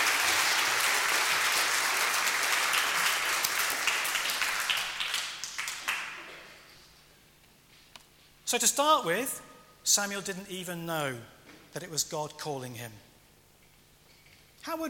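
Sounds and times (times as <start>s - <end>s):
crowd applause: 0.0s - 6.6s
speech: 8.5s - 13.1s, 14.6s - 14.8s.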